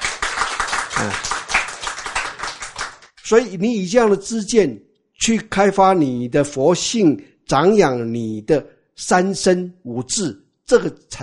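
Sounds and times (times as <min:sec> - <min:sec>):
audience clapping hands: 0:00.0 - 0:03.4
speech: 0:01.0 - 0:01.4, 0:03.3 - 0:11.2.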